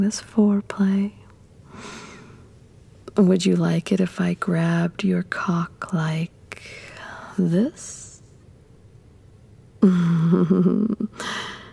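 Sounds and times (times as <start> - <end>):
speech: 0.0 - 1.2, 1.8 - 2.1, 3.2 - 6.8, 7.4 - 8.0, 9.8 - 11.6
sharp voiced intake of breath: 1.7 - 2.5.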